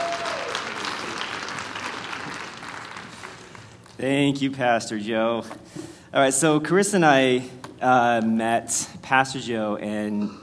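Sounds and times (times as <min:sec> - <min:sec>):
audience clapping: 0:00.0 - 0:04.0
speech: 0:04.0 - 0:10.4.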